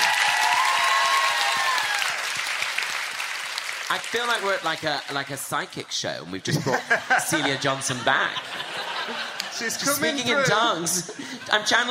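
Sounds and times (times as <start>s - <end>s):
whistles and cheers: 0.0s - 2.3s
crowd clapping: 0.0s - 5.8s
speech: 3.9s - 11.8s
laughter: 6.5s - 11.8s.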